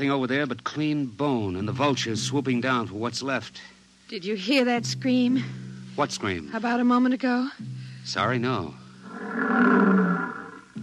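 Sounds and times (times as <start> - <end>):
speech: 0.0 - 8.8
lions roaring: 9.0 - 10.8.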